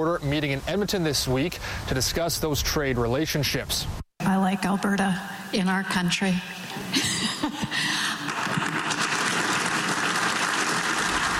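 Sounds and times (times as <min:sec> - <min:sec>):
speech: 0:00.0 - 0:07.2
round of applause from delegates: 0:07.8 - 0:11.3.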